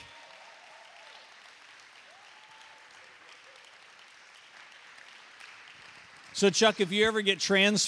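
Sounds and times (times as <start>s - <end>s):
cheering: 0.0s - 7.2s
audience applause: 0.0s - 7.8s
speech: 6.4s - 7.8s.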